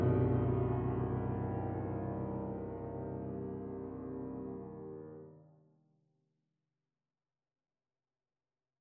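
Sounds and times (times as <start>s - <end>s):
piano prelude: 0.0s - 5.4s.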